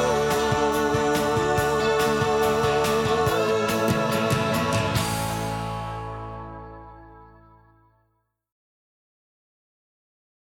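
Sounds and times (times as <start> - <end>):
jingle: 0.0 - 7.9.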